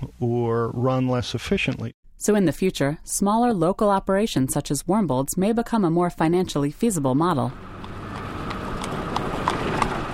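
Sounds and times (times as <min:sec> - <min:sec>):
speech: 0:00.2 - 0:07.7
Amish horse-drawn buggy hooves clip-clopping: 0:07.7 - 0:10.1.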